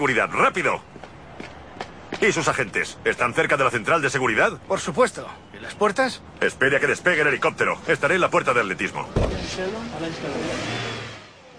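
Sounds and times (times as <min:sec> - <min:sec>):
speech: 0:00.0 - 0:00.9, 0:02.2 - 0:10.9
silver Mercedes reversing and driving away: 0:09.1 - 0:11.5.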